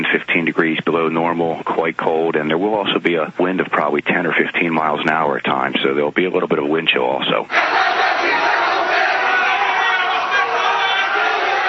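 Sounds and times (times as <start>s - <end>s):
speech: 0.0s - 8.3s
crowd of about 200 protesters shouting while marching in Beirut: 7.5s - 11.6s.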